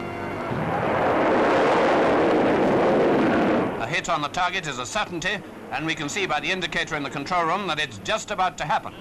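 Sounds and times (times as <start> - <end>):
guided missile launch roar: 0.2 - 4.0
speech: 4.1 - 8.9.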